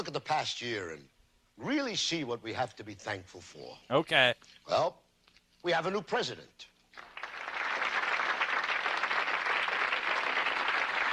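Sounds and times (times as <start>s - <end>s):
speech: 0.1s - 5.0s, 5.6s - 7.1s
audience applause: 7.0s - 11.1s.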